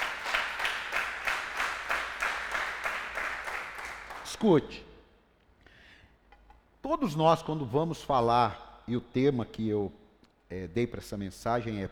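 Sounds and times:
crowd clapping rhythmically: 0:00.0 - 0:04.5
speech: 0:04.3 - 0:04.9, 0:06.9 - 0:11.8.

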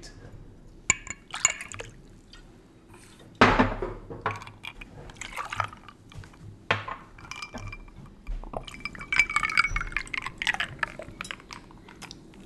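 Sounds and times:
glass clinking: 0:00.9 - 0:02.0, 0:04.3 - 0:12.2
beer being poured into a glass: 0:00.9 - 0:02.1, 0:04.2 - 0:12.2.

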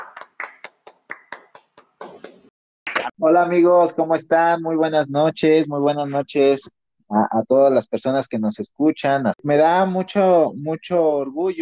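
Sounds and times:
audience applause: 0:00.0 - 0:03.1
speech: 0:03.2 - 0:11.6.

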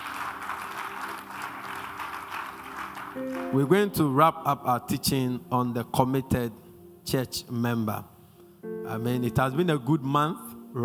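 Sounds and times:
audience clapping: 0:00.0 - 0:03.8
speech: 0:03.2 - 0:08.1, 0:08.9 - 0:10.8.

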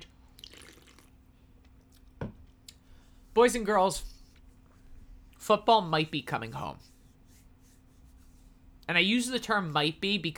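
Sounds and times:
person sipping beer: 0:00.0 - 0:01.2
speech: 0:03.4 - 0:04.1, 0:05.5 - 0:06.9, 0:08.9 - 0:10.3.

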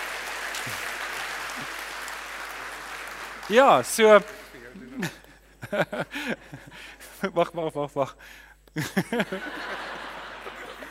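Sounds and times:
audience applauding: 0:00.0 - 0:04.5
speech: 0:00.6 - 0:00.9, 0:03.5 - 0:04.4, 0:05.0 - 0:09.8
laughter: 0:04.9 - 0:07.2, 0:08.8 - 0:10.8.

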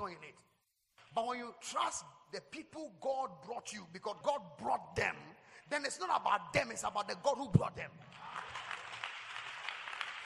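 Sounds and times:
speech: 0:01.2 - 0:08.5
subdued audience clapping: 0:08.1 - 0:10.2.

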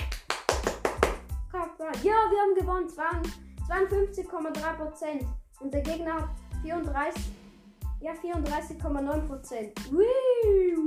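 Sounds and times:
applause: 0:00.0 - 0:01.2
speech: 0:01.9 - 0:07.4, 0:08.0 - 0:10.8.

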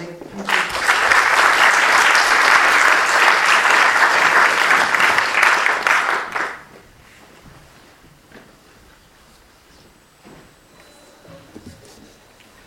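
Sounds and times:
audience applause: 0:00.4 - 0:06.7.

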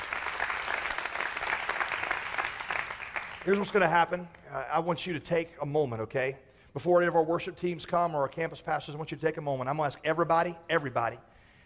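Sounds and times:
audience clapping: 0:00.0 - 0:04.4
speech: 0:03.4 - 0:11.3.

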